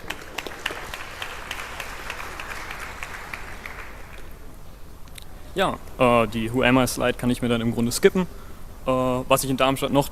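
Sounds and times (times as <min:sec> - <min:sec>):
audience applause: 0:00.0 - 0:04.4
speech: 0:05.6 - 0:10.1.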